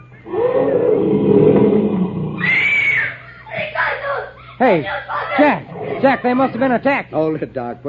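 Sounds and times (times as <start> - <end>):
lion roaring: 0.2 - 2.6
speech: 4.6 - 7.8
laughter: 5.6 - 7.6.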